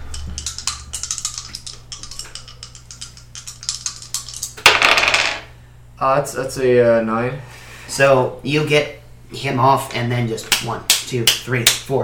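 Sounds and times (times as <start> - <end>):
dice rolling: 0.4 - 5.5
speech: 6.0 - 12.0.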